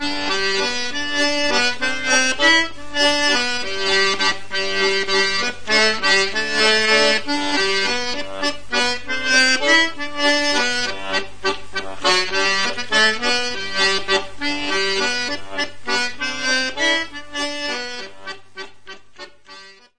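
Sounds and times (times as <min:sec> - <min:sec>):
waltz: 0:00.0 - 0:19.9.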